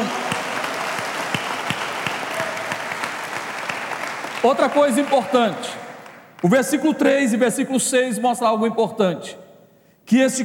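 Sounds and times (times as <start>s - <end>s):
audience applause: 0.0s - 6.5s
speech: 4.4s - 5.8s, 6.4s - 9.4s, 10.1s - 10.4s.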